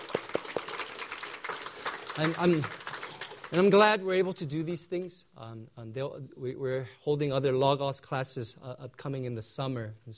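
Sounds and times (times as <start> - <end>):
audience applause: 0.0 - 3.9
speech: 2.2 - 2.8, 3.5 - 10.1.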